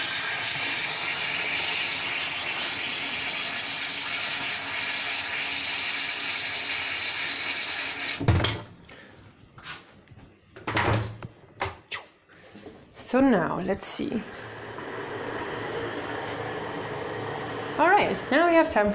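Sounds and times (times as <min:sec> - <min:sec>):
loud water heater heating water: 0:00.0 - 0:09.1, 0:13.3 - 0:18.9
speech: 0:13.2 - 0:14.6, 0:17.8 - 0:18.9.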